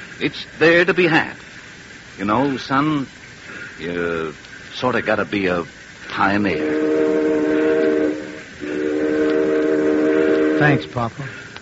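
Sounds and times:
speech: 0:00.2 - 0:01.5, 0:02.2 - 0:03.2, 0:03.8 - 0:06.8, 0:10.6 - 0:11.4
train whistle blowing: 0:06.2 - 0:11.4.

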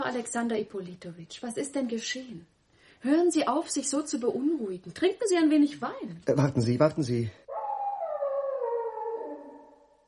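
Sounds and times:
speech: 0:00.1 - 0:07.4
dogs howling: 0:07.5 - 0:10.0.

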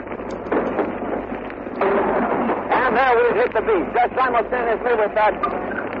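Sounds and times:
low rumble: 0:00.0 - 0:05.9
artillery shell bursts during a beach landing: 0:00.4 - 0:03.8
speech: 0:03.0 - 0:05.6.

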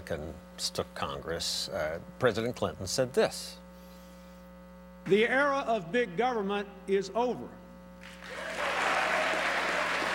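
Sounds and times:
speech: 0:00.1 - 0:03.6, 0:05.0 - 0:08.4
audience applause after a speech: 0:08.0 - 0:10.1.

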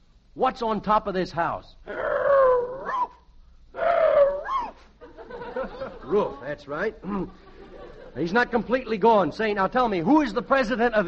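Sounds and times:
speech: 0:00.4 - 0:02.2, 0:06.1 - 0:07.5, 0:08.2 - 0:11.0
man imitating a dog growling: 0:01.9 - 0:03.1, 0:03.8 - 0:04.7
laughter: 0:05.0 - 0:08.7.

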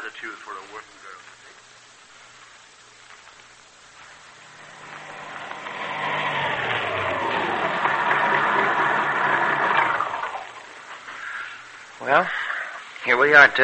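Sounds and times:
speech: 0:00.1 - 0:01.8, 0:12.1 - 0:12.4, 0:13.0 - 0:13.6
car driving: 0:03.8 - 0:11.9.

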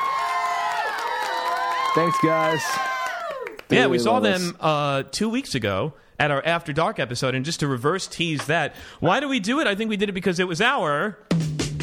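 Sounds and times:
studio audience cheering and whooping: 0:00.0 - 0:04.1
speech: 0:02.0 - 0:02.9, 0:03.7 - 0:11.5.

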